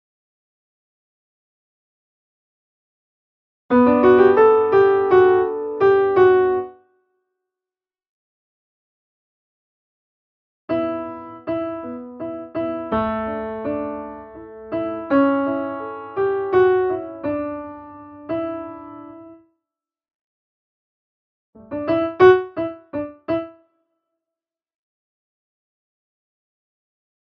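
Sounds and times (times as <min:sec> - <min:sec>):
piano: 0:03.7 - 0:06.9, 0:10.7 - 0:19.5, 0:21.6 - 0:23.7.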